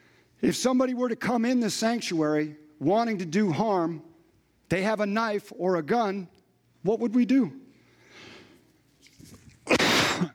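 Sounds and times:
speech: 0.4 - 4.1, 4.7 - 7.6
person coughing into the microphone: 9.6 - 10.3.

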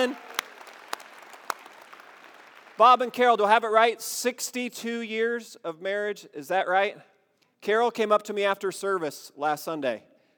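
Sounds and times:
speech: 0.0 - 0.2, 2.8 - 10.1
loud round of applause: 0.0 - 3.4.

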